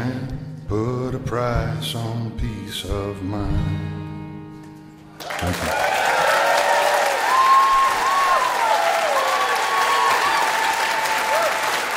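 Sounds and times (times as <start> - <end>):
speech: 0.7 - 4.0, 5.4 - 5.9
audience applause after a live song at a Winnipeg concert: 5.2 - 11.9.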